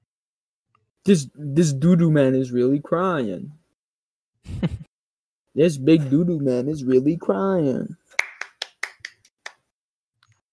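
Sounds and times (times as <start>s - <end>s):
speech: 1.0s - 3.6s, 5.6s - 8.0s
sharp claps: 8.1s - 9.7s.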